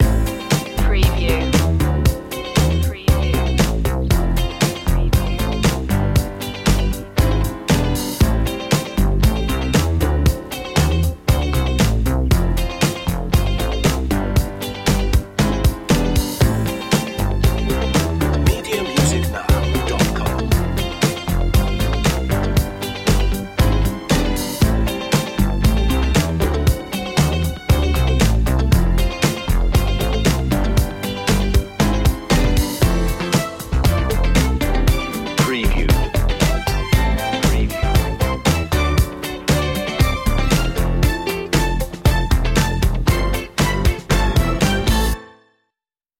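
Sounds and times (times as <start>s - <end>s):
boogie disco music: 0.0s - 45.2s.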